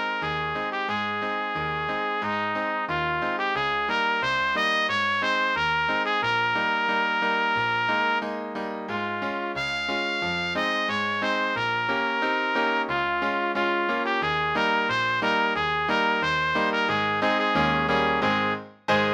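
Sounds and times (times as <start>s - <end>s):
polka for trumpet and piano: 0.0s - 19.1s.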